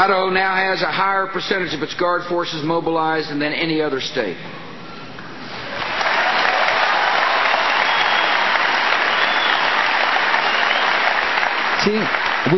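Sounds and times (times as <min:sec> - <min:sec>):
speech: 0:00.0 - 0:04.6, 0:11.8 - 0:12.5
audience applause: 0:05.7 - 0:12.5.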